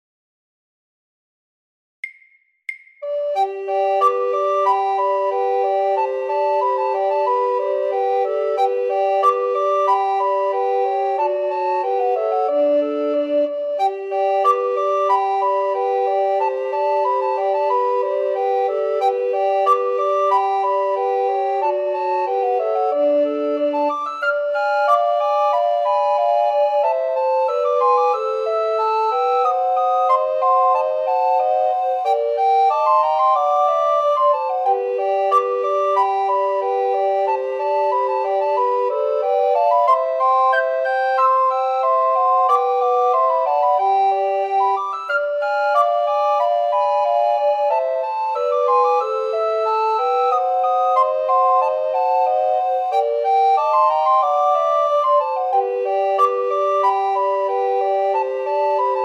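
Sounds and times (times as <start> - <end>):
suite for recorders: 2.0 - 59.0.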